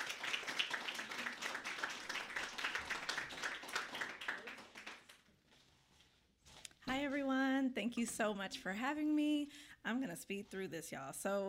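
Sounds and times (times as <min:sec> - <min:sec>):
audience applause: 0:00.0 - 0:05.2
speech: 0:07.0 - 0:11.4.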